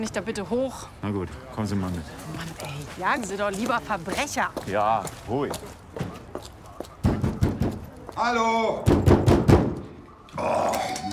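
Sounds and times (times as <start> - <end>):
speech: 0.0 - 5.8, 8.2 - 9.1, 10.4 - 11.0
heavy booming banging on a door: 8.8 - 9.8.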